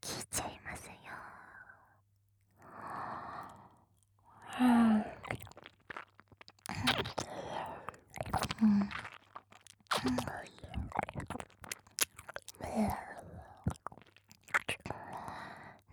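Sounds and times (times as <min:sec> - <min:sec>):
ear licking: 0:04.4 - 0:15.3.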